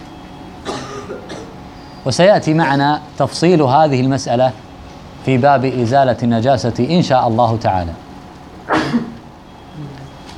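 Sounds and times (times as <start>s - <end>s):
speech: 1.1s - 4.6s, 5.2s - 8.0s
sneeze: 8.7s - 9.2s.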